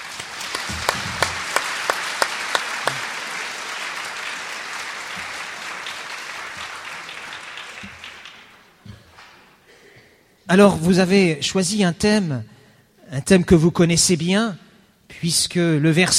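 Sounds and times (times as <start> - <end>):
applause: 0.0 - 9.3
speech: 10.5 - 12.5, 13.1 - 16.1.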